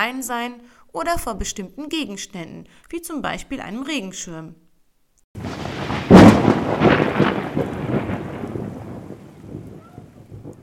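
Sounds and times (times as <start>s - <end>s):
speech: 0.0s - 4.6s
steady hiss of rain: 5.4s - 10.6s
thunder crack with long rolling rumble: 5.4s - 10.6s.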